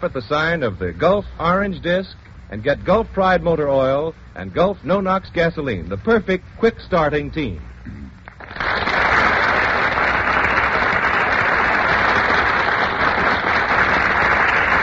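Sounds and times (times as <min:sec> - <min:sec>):
speech: 0:00.0 - 0:08.0
burst of audience applause: 0:08.3 - 0:14.8.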